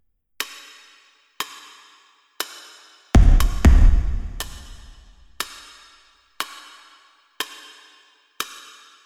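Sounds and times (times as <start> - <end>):
bass: 3.2 - 5.2.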